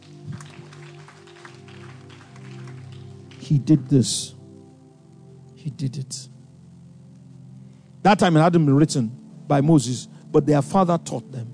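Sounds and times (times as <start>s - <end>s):
audience clapping: 0.0s - 4.1s
speech: 3.5s - 4.4s, 5.6s - 6.4s, 8.0s - 11.5s.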